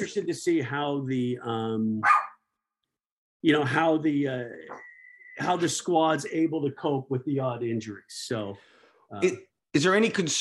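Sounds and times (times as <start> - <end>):
speech: 0.0 - 2.2, 3.4 - 10.3
excited dog barking: 2.0 - 2.4.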